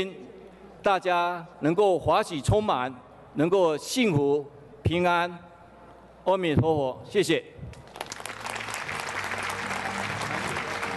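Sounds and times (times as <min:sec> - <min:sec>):
speech: 0:00.0 - 0:00.2, 0:00.8 - 0:05.5, 0:06.2 - 0:07.8
audience applause: 0:07.9 - 0:10.9.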